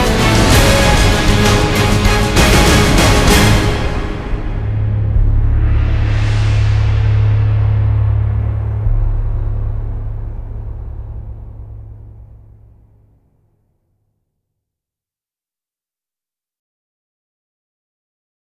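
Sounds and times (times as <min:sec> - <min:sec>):
orchestra playing: 0:00.0 - 0:12.7.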